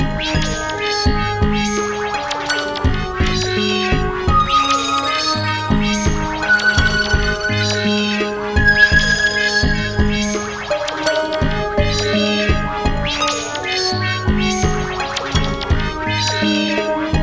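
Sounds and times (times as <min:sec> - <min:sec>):
electronic music: 0:00.2 - 0:17.2.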